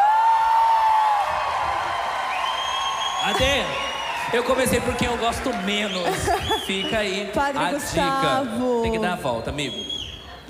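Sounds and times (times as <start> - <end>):
audience applause: 0.0 - 8.4
speech: 3.3 - 10.4
laughter: 5.7 - 7.6.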